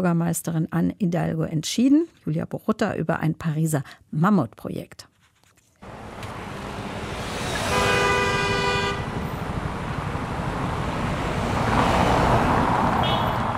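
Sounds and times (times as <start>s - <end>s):
speech: 0.0s - 5.1s
dense traffic roar of scooters, cars and delivery vans on the Champs-Élysées in Paris: 5.8s - 13.5s
sustained car horn toot: 7.6s - 9.2s, 13.0s - 13.5s.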